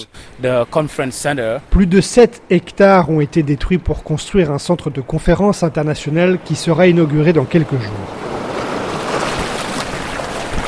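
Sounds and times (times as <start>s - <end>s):
speech: 0.0s - 8.4s
waves washing onto a beach at high tide beside the Senegambia hotel: 0.0s - 10.6s
wind noise: 8.1s - 10.6s.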